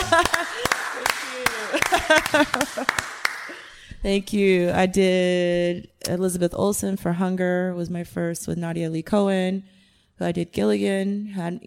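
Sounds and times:
people laughing: 0.0s - 3.7s
hand clapping: 0.0s - 3.8s
speech: 2.1s - 3.2s, 4.0s - 11.6s.

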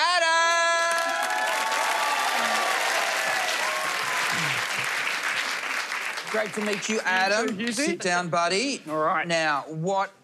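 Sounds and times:
cheers: 0.0s - 4.9s
live show audience clapping: 0.0s - 8.0s
speech: 6.3s - 10.2s.

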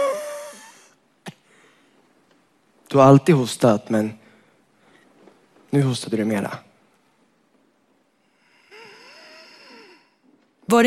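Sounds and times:
speech: 2.9s - 4.2s, 5.7s - 6.7s
labored breathing of an elderly woman: 8.4s - 10.3s.

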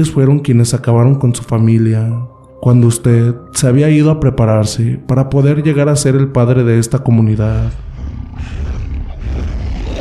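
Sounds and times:
speech: 0.0s - 8.6s
growling outside: 7.7s - 9.9s.

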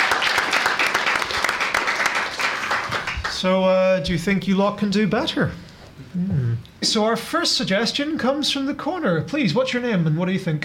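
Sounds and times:
audience round of applause: 0.0s - 3.5s
speech: 3.4s - 10.6s.

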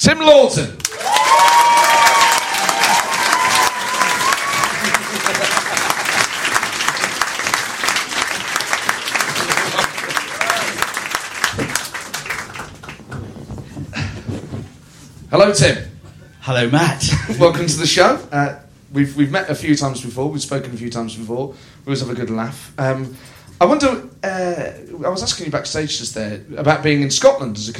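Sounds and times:
speech: 0.0s - 0.8s, 15.4s - 15.9s, 16.5s - 27.7s
studio audience applauding a guest's entrance: 0.8s - 13.2s
laughter: 4.6s - 6.4s, 9.2s - 10.4s.

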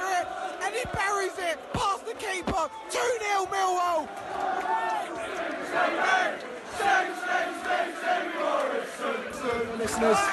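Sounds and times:
large football crowd chanting a player's name: 0.0s - 10.3s
speech: 0.8s - 10.3s.

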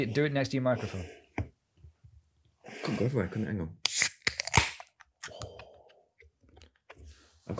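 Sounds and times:
speech: 0.0s - 1.2s, 2.8s - 4.0s
beer can cracked open with a pop and fizz: 3.8s - 4.9s.

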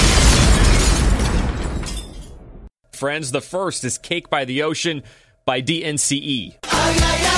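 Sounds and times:
bomb explosion sound effect: 0.0s - 2.7s
speech: 3.0s - 7.2s.

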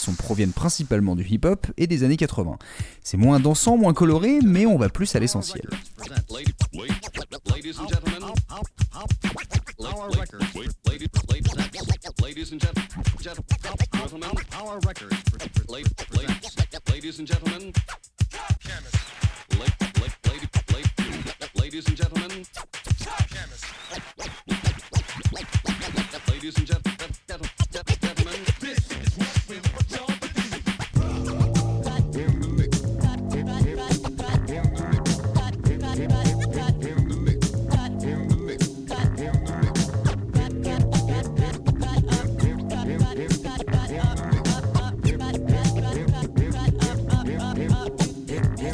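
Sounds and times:
turntable scratching over radio samples: 0.0s - 1.2s, 3.2s - 48.7s
speech: 0.0s - 10.8s, 11.8s - 16.4s.

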